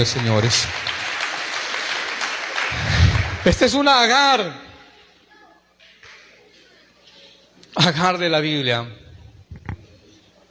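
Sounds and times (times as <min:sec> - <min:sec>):
speech: 0:00.0 - 0:01.0, 0:02.7 - 0:04.6, 0:07.8 - 0:09.0
audience applause: 0:00.0 - 0:03.9.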